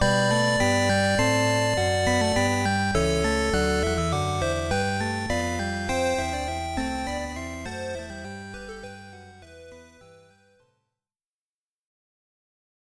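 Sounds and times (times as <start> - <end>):
morning music: 0.0 - 10.9.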